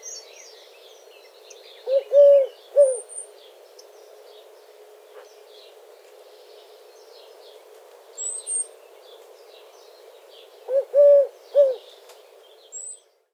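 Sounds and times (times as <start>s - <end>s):
Eurasian collared dove cooing: 1.8s - 3.1s, 10.6s - 11.9s.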